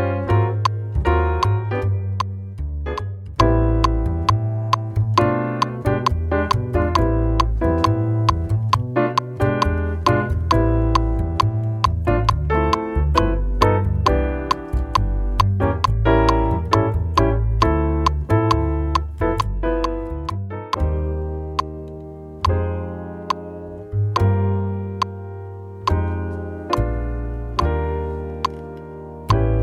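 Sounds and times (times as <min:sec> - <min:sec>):
groove click: 0:00.0 - 0:29.6.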